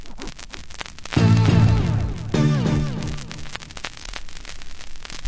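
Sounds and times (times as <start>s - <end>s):
hip hop DJ music: 1.2s - 3.6s.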